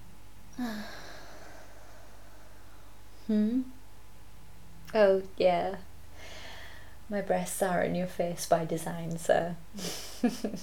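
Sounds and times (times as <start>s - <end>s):
speech: 0.6s - 1.0s, 3.3s - 3.8s, 4.9s - 5.9s, 7.1s - 10.6s
deep breathing: 0.6s - 3.0s, 6.2s - 7.0s.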